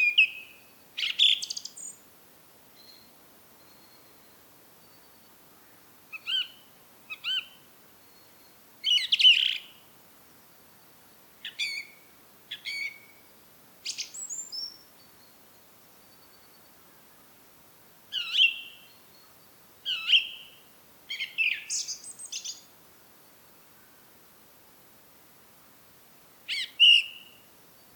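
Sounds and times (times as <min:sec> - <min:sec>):
song thrush singing: 0:00.0 - 0:02.1, 0:06.1 - 0:16.7, 0:18.1 - 0:24.0, 0:26.5 - 0:27.9.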